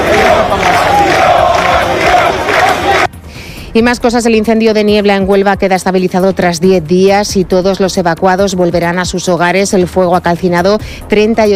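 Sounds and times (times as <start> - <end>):
large crowd shouting asylum on a beach: 0.0 - 3.1
speech: 3.7 - 11.5.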